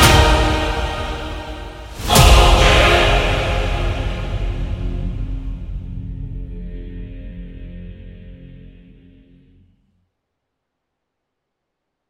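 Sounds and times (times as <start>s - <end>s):
dramatic trailer music: 0.0s - 9.6s.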